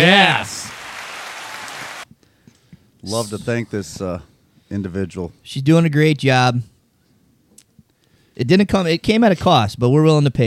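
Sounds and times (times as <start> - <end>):
applause in studio: 0.0 - 2.1
speech: 3.0 - 6.7, 8.4 - 10.4.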